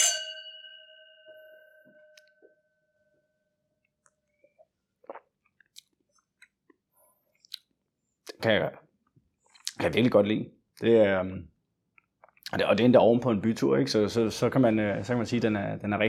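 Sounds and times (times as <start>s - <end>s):
glasses clinking in a toast: 0.0s - 2.5s
speech: 8.4s - 8.8s, 9.8s - 11.5s, 12.5s - 16.0s.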